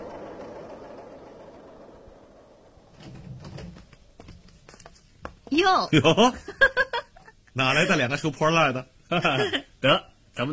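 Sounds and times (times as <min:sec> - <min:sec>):
cargo trucks driving past on a dirt road: 0:00.0 - 0:04.2
walking tractors driving past on a dirt road: 0:00.0 - 0:05.5
speech: 0:05.6 - 0:06.5, 0:07.6 - 0:10.5
laughter: 0:06.0 - 0:08.1, 0:09.1 - 0:09.7.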